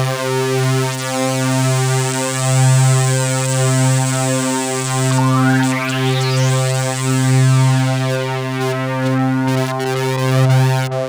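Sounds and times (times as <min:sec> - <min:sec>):
Roland JV 2080 club organ playing C2: 0:00.1 - 0:11.0.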